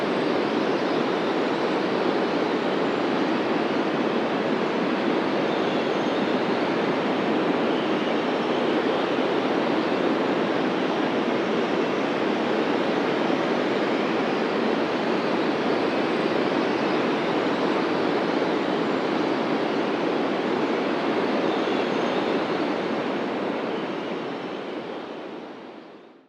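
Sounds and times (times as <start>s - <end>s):
whistling wind gusts in a snow blizzard: 0.0s - 26.2s.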